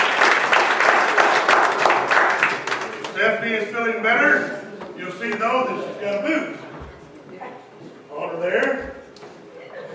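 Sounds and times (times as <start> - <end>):
audience applause for the pianist: 0.0 - 3.2
speech: 3.4 - 6.6, 8.4 - 9.0.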